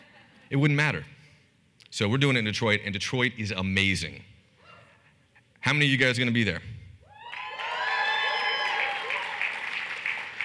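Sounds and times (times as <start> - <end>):
speech: 0.5 - 1.2, 1.9 - 4.3, 5.6 - 6.8
whooping and cheering voices: 7.1 - 9.7
audience clapping: 7.3 - 10.4.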